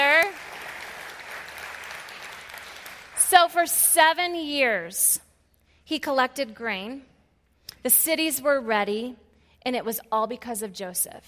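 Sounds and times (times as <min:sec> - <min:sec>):
audience applause: 0:00.0 - 0:03.2
speech: 0:03.3 - 0:05.3, 0:05.9 - 0:07.1, 0:07.8 - 0:11.2.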